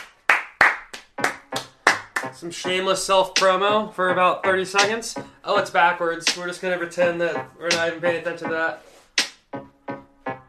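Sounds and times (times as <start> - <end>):
applause: 0.0 - 2.3
speech: 2.4 - 8.9.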